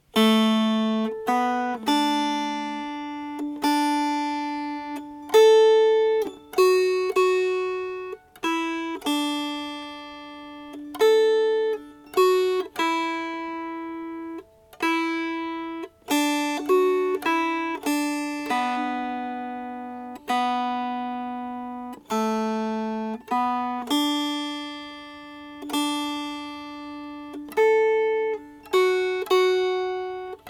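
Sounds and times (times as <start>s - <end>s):
melody: 0.2s - 30.4s.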